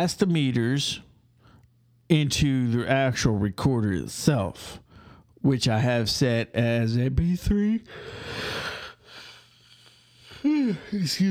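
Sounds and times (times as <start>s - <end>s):
speech: 0.0s - 1.1s, 2.1s - 4.8s, 5.4s - 8.7s, 10.4s - 11.2s
person yawning: 10.3s - 11.1s.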